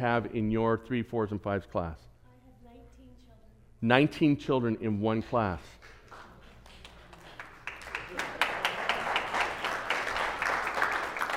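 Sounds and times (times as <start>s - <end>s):
speech: 0.0s - 2.1s, 3.8s - 6.0s
group applause: 5.8s - 11.3s.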